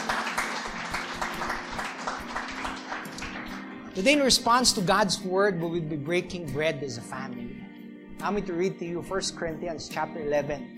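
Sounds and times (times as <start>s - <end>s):
audience clapping: 0.0s - 4.0s
speech: 4.0s - 7.5s, 8.2s - 10.7s.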